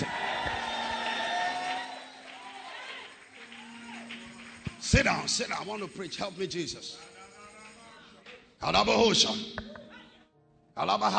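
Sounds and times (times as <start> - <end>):
audience shouting: 0.0 - 3.1
audience clapping: 0.0 - 6.2
speech: 4.9 - 7.1, 8.6 - 9.8, 10.8 - 11.1.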